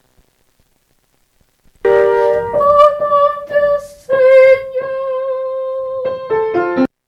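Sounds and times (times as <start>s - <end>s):
tenor singing: 1.9s - 6.9s.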